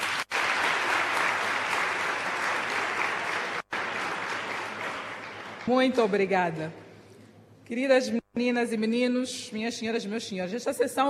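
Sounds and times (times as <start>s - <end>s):
crowd applause: 0.0s - 5.7s
speech: 5.6s - 6.8s, 7.7s - 11.0s.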